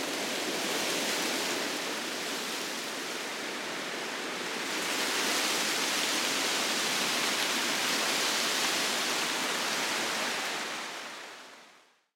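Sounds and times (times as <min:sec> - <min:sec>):
wind in trees: 0:00.0 - 0:12.0.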